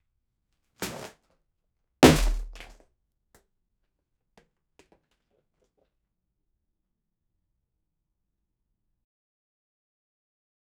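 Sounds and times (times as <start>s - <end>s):
body falling: 0.8s - 1.1s, 2.0s - 2.7s.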